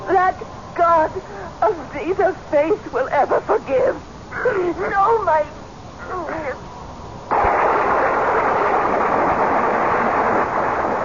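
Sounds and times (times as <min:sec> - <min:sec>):
speech: 0:00.3 - 0:06.7
lightning strike: 0:07.3 - 0:11.0
thunder: 0:07.3 - 0:11.0.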